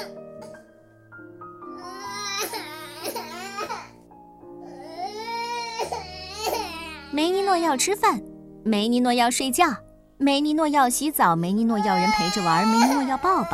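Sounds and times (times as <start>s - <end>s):
baby crying: 1.7s - 4.0s, 4.6s - 7.9s, 11.7s - 13.5s
speech: 7.2s - 13.5s.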